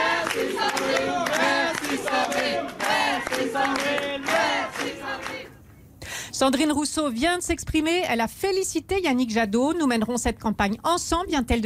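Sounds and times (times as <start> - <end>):
supporters of Sandrine Rousseau cheering after a primary election result: 0.0 - 5.5
speech: 6.4 - 11.6.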